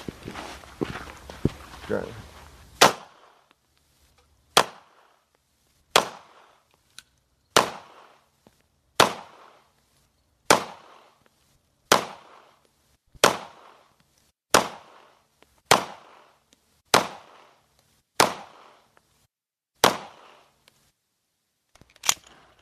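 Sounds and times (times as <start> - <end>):
speech: 1.9 - 2.3
pistol shots fired at a target: 2.8 - 3.5, 4.5 - 5.2, 5.9 - 6.6, 7.5 - 8.2, 9.0 - 9.7, 10.5 - 11.2, 11.9 - 12.6, 13.2 - 13.9, 14.5 - 17.6, 18.2 - 18.9, 19.8 - 20.5.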